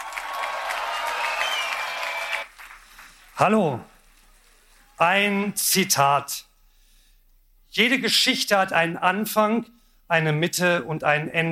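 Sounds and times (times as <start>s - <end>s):
audience applause: 0.0s - 4.2s
speech: 3.4s - 3.9s, 5.0s - 6.5s, 7.7s - 11.5s.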